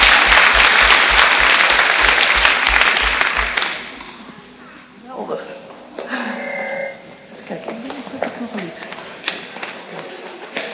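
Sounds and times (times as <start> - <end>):
audience applause: 0.0 - 4.0.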